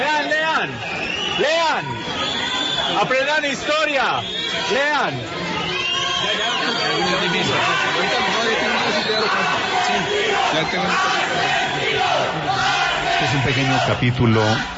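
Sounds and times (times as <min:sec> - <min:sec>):
large crowd shouting chants: 0:00.0 - 0:14.7
speech: 0:01.4 - 0:05.4, 0:06.4 - 0:14.7.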